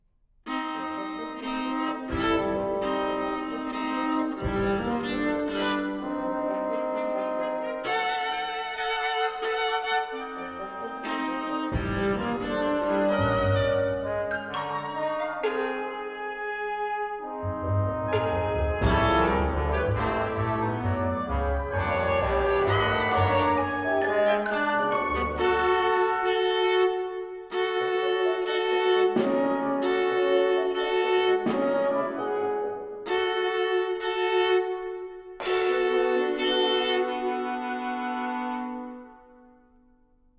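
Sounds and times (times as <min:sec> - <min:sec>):
viola and chamber orchestra playing a scherzo: 0:00.5 - 0:39.4.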